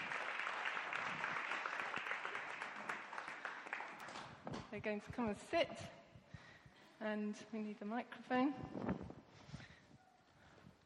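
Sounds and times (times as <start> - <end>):
audience applause: 0.0 - 4.4
speech: 4.7 - 6.0, 7.0 - 9.1.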